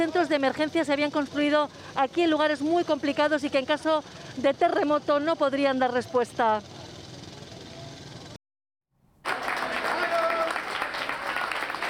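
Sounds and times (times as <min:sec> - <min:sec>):
speech: 0:00.0 - 0:06.7
applause welcoming returning rescue team: 0:09.2 - 0:11.8
cheering voices: 0:09.3 - 0:11.8.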